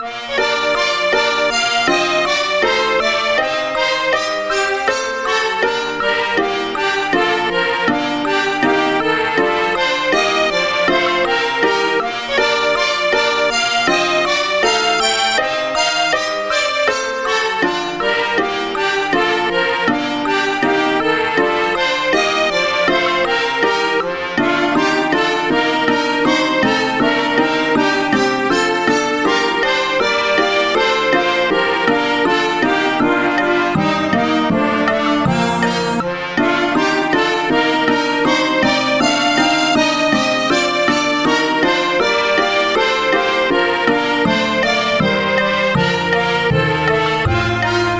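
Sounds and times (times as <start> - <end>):
brass instruments: 0.0 - 47.9.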